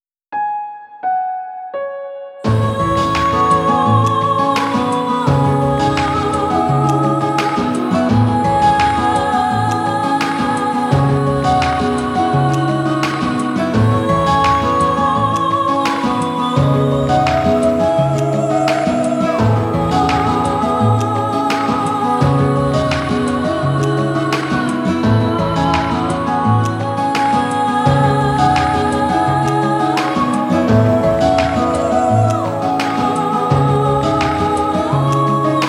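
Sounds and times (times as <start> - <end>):
slow emotional love song: 0.5 - 35.6.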